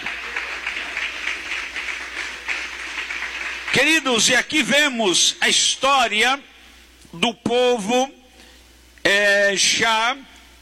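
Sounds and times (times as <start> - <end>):
audience applause: 0.0 - 4.0
speech: 3.8 - 6.5, 7.1 - 8.2, 9.0 - 10.3.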